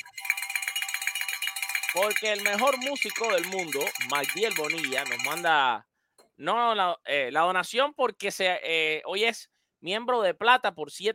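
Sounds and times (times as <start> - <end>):
small handbell rung for a donation: 0.0 - 5.5
speech: 2.0 - 11.1.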